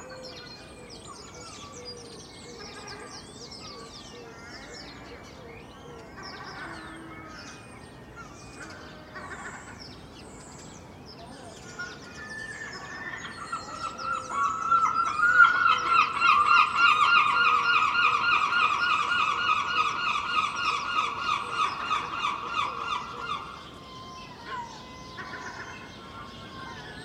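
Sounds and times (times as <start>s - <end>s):
gulls calling: 11.7s - 27.0s.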